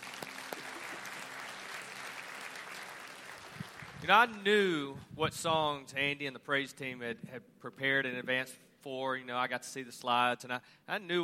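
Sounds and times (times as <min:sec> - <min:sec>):
audience hand clapping: 0:00.0 - 0:04.5
speech: 0:04.0 - 0:11.2.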